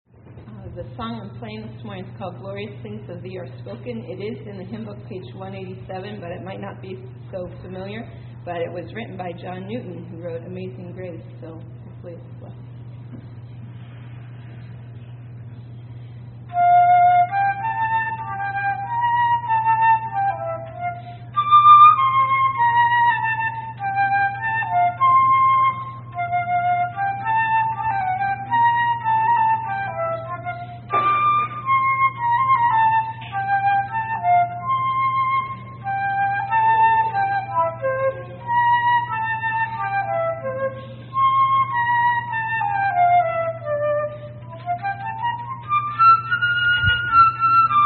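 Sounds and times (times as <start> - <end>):
hymn played on flute: 16.2 - 47.8.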